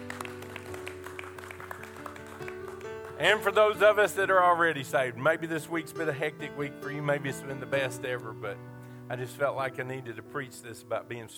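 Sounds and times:
audience applause: 0.0s - 3.5s
speech: 3.2s - 11.3s.

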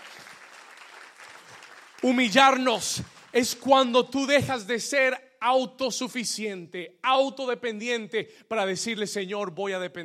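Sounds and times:
audience applause: 0.0s - 3.3s
speech: 2.0s - 10.0s.

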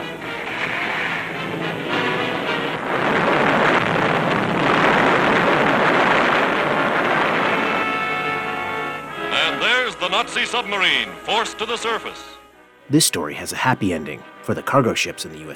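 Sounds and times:
volley of depth charge explosions: 0.4s - 9.1s
speech: 10.1s - 15.5s.

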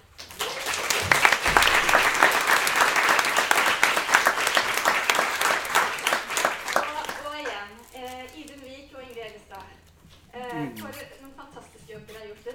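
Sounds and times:
audience applause: 0.1s - 7.5s.

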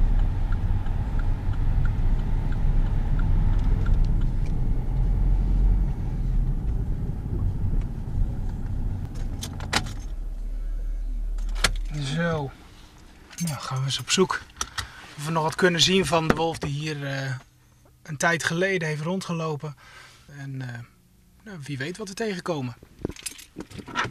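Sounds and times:
car being parked: 0.0s - 18.0s
speech: 13.9s - 14.5s, 15.2s - 20.9s, 21.5s - 24.0s.

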